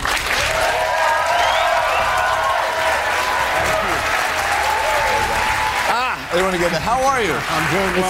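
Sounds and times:
large crowd applause: 0.0s - 8.0s
cheering and whistles: 0.3s - 6.2s
speech: 6.4s - 8.0s.

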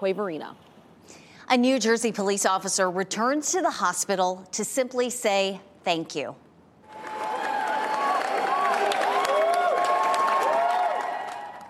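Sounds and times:
speech: 0.0s - 6.4s
hospital staff cheering and applauding: 6.8s - 11.6s.

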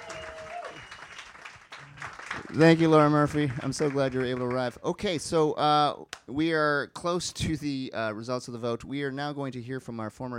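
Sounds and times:
round of applause: 0.0s - 4.8s
speech: 2.5s - 10.3s.

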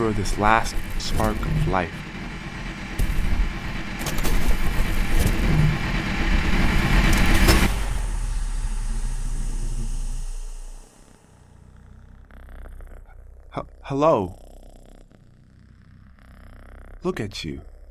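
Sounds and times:
backup generator starting up and whirring: 0.0s - 11.6s
speech: 0.1s - 2.1s, 13.9s - 14.4s, 17.0s - 17.7s.

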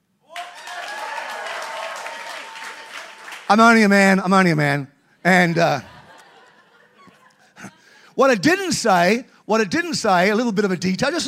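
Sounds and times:
crowd applauding: 0.2s - 3.9s
speech: 3.5s - 5.9s, 8.2s - 11.2s
laughter: 5.1s - 8.1s.

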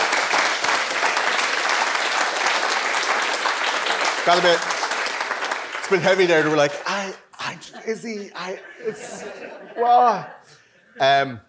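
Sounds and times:
audience clapping: 0.0s - 8.6s
speech: 4.2s - 4.8s, 5.9s - 11.4s
laughter: 5.9s - 11.4s.

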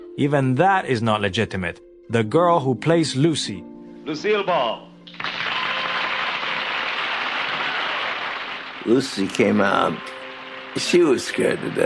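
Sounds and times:
speech: 0.2s - 4.9s, 8.8s - 10.2s, 10.8s - 11.8s
audience applause: 5.1s - 9.6s
crowd roaring with approval: 5.4s - 8.8s.

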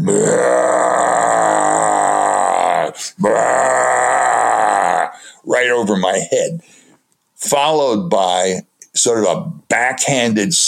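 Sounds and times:
voice imitating deep breathy rasping roars: 0.0s - 5.2s
speech: 5.8s - 6.7s, 7.4s - 10.6s.

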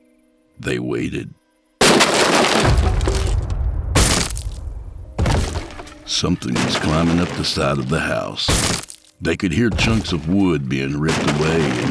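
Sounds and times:
speech: 0.6s - 1.4s, 6.1s - 11.8s
upstairs window glass shattering: 1.8s - 7.6s, 8.5s - 9.1s, 9.7s - 11.8s.

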